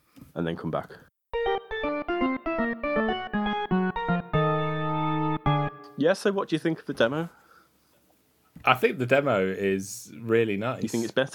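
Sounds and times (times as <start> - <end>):
speech: 0.4 - 1.1, 6.0 - 7.4, 8.6 - 11.3
short podcast synth jingle: 1.3 - 6.0.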